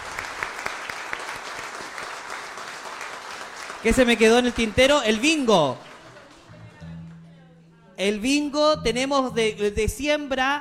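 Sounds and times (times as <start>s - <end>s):
crowd applauding: 0.0s - 7.3s
speech: 3.8s - 5.9s, 8.0s - 10.6s.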